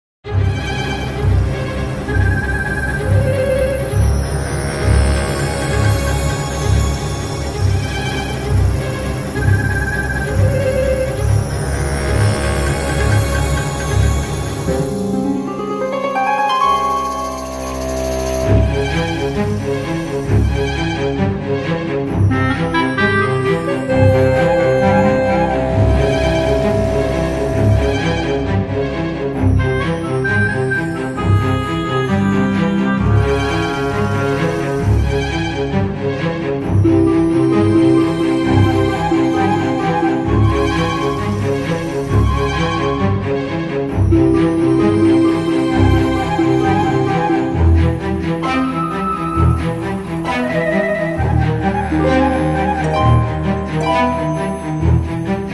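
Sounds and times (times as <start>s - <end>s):
creepy fantasy music: 0.3s - 55.5s.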